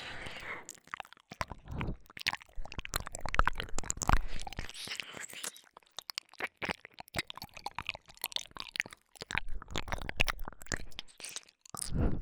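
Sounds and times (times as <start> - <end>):
binaural ear licking ASMR sounds: 0.0 - 12.0.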